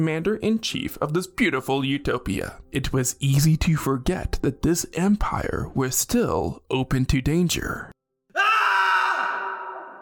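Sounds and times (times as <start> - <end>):
speech: 0.0 - 8.0
ear-piercing scream: 8.3 - 10.0.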